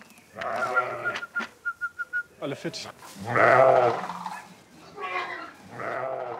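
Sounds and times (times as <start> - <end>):
speech: 0.4 - 0.7, 2.4 - 4.2
sheep bleating while being driven to pasture: 0.4 - 1.2, 3.2 - 6.3.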